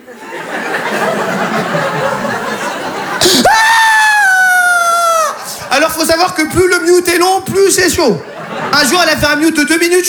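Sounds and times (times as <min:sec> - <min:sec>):
steady crowd laughter: 0:00.0 - 0:09.8
man's voice imitating a baby's crying fit: 0:03.2 - 0:05.5
speech: 0:06.2 - 0:10.0.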